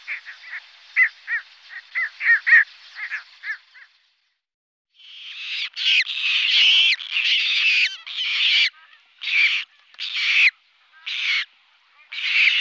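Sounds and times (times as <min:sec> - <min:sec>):
Squacco heron giving harsh rasping squawks: 0:01.0 - 0:03.6, 0:05.3 - 0:11.4, 0:12.0 - 0:12.5.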